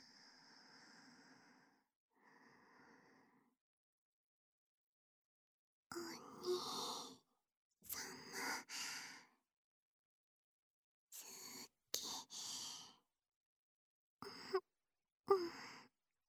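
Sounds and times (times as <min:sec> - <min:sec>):
person talking in sleep: 0:06.0 - 0:07.2, 0:07.9 - 0:08.7, 0:11.2 - 0:12.9, 0:15.3 - 0:15.6
sleeping breathing: 0:12.0 - 0:12.9.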